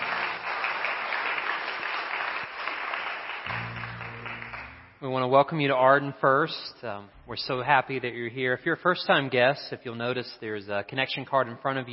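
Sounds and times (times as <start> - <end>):
congregation applauding the choir and worship team at a church service: 0.0 - 5.0
low hum: 3.5 - 5.2, 7.1 - 8.2
speech: 5.0 - 11.9.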